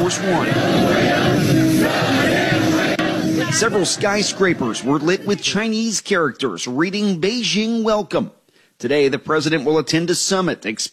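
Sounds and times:
hundreds of men and women chanting in unison to greet President Trump: 0.0 - 5.6
speech: 0.1 - 2.2, 3.5 - 10.9.

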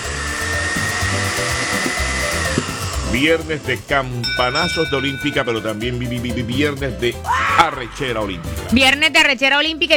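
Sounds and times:
blender running: 0.0 - 3.1
speech: 3.2 - 9.9.

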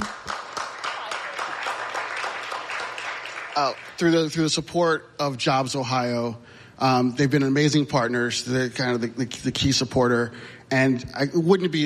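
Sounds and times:
audience clapping: 0.0 - 4.3
speech: 3.6 - 11.8.

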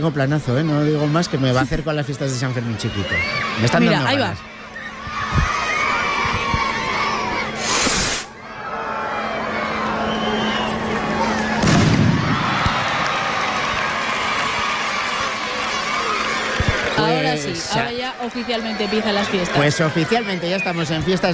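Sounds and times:
speech: 0.0 - 4.5, 17.5 - 21.3
crowd shouting and cheering: 0.0 - 21.3
festival opening rocket bangs: 11.6 - 13.2.

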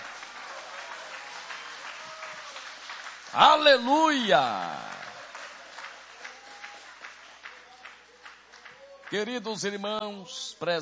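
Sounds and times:
audience applauding: 0.0 - 9.8
speech: 3.3 - 4.9, 9.1 - 10.8.

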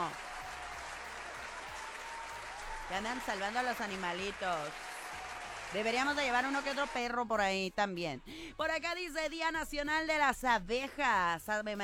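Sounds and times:
faint crowd applause for National Veterinarian Day: 0.0 - 7.1
speech: 2.9 - 4.8, 5.7 - 11.8.

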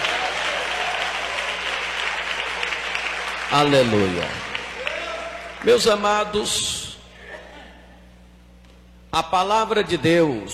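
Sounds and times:
audience clapping: 0.0 - 6.2
speech: 3.5 - 4.5, 5.6 - 6.8, 9.2 - 10.5.

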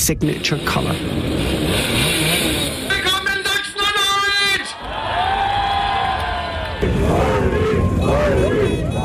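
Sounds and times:
speech: 0.0 - 2.1
Simson Schwalbe moped engines revving: 0.0 - 4.2, 6.8 - 9.0
crowd cheering and shouting: 3.2 - 9.0.

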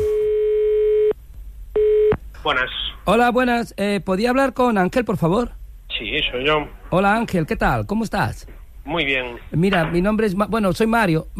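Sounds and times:
telephone line ringing during a radio phone call: 0.0 - 1.1
speech: 2.4 - 11.3.

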